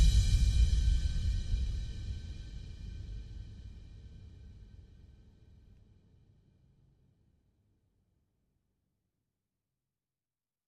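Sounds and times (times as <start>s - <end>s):
percussion: 0.0s - 5.6s.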